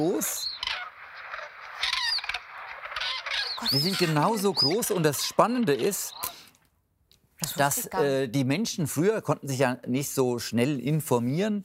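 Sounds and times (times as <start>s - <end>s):
speech: 0.0s - 0.5s, 3.6s - 6.4s, 7.4s - 11.6s
young cranes peeping: 0.0s - 6.6s.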